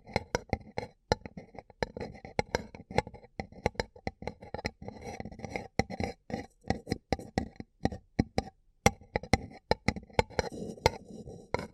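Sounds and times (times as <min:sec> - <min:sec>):
fingers tapping and scratching a paper cup: 0:00.0 - 0:11.7.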